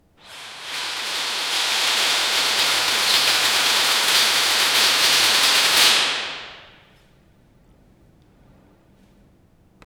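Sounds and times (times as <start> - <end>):
theater stage curtain opening: 0.2 - 6.8.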